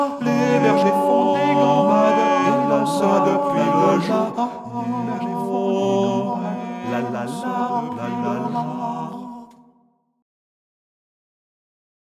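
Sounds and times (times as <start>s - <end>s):
tenor singing Christmas carol: 0.0s - 9.6s.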